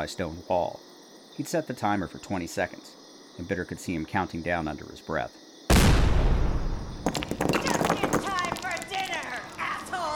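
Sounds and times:
speech: 0.0s - 6.0s
breaching charge explosion: 5.7s - 7.4s
wall collapsing in clattering tumbling debris: 6.9s - 9.6s.

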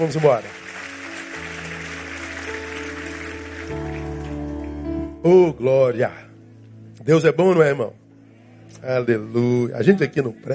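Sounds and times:
speech: 0.0s - 0.6s, 5.2s - 6.2s, 7.0s - 8.0s, 8.8s - 10.5s
audience applauding: 0.0s - 5.0s.

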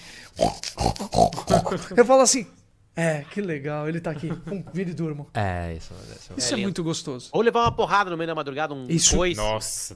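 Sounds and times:
person imitating a pug snoring: 0.4s - 1.9s
speech: 1.7s - 9.9s
laughter: 4.1s - 5.0s.

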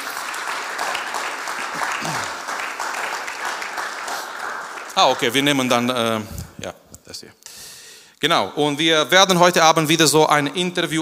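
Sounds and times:
audience applause: 0.0s - 5.8s
speech: 5.0s - 7.4s, 8.2s - 10.9s.

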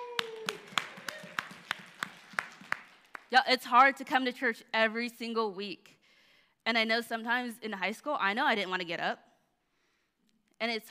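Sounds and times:
rhythmic hand claps: 0.0s - 4.1s
speech: 3.3s - 6.0s, 6.6s - 9.3s, 10.6s - 10.9s.

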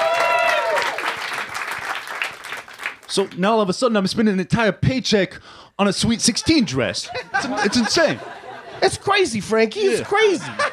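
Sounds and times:
high sustained whoop: 0.0s - 1.0s
audience clapping: 0.0s - 3.4s
speech: 3.1s - 10.7s
laughter: 6.2s - 10.7s.

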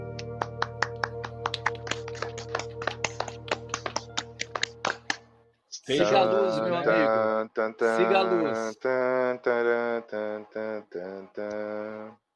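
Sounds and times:
hands clapping: 0.0s - 6.2s
speech: 5.9s - 12.2s.

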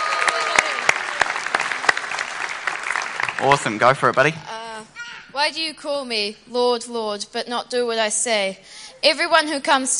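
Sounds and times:
audience applause: 0.0s - 4.4s
speech: 3.4s - 4.5s, 5.4s - 9.9s.

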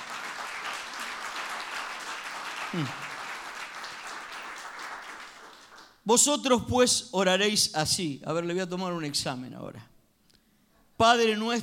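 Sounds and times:
audience applause: 0.0s - 5.9s
speech: 2.7s - 3.1s, 6.1s - 9.9s, 11.0s - 11.6s.

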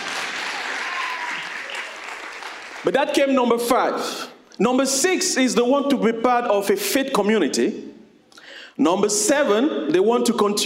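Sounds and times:
audience applauding: 0.0s - 3.0s
speech: 2.8s - 7.9s, 8.8s - 10.6s.

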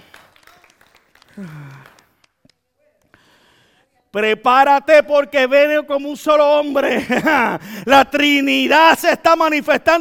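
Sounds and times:
audience applauding: 0.0s - 2.4s
speech: 1.4s - 2.0s, 4.1s - 9.9s
laughter: 6.8s - 7.6s.

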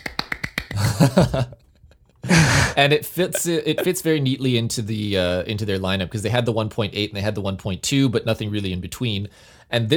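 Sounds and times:
hand clap: 0.0s - 1.0s
speech: 1.0s - 1.6s, 2.2s - 9.9s.

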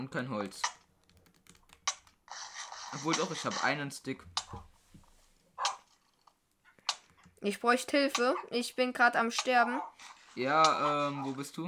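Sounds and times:
speech: 0.0s - 0.8s, 2.9s - 4.7s, 7.4s - 11.6s
dogs barking in a video game: 5.6s - 5.9s, 8.2s - 8.6s, 9.5s - 10.0s.

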